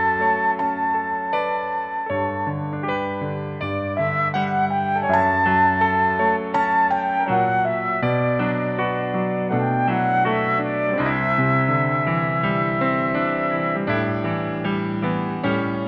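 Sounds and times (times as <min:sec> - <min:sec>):
flute: 0:00.0 - 0:15.2
piano: 0:00.0 - 0:15.8.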